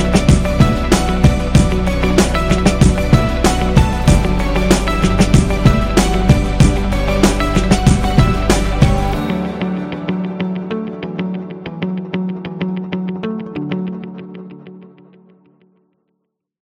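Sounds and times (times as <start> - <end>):
hip hop corporate background music: 0.0 - 12.4.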